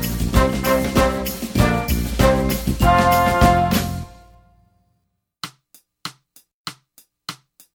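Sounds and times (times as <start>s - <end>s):
brass and woodwind eighth note: 0.0s - 4.5s.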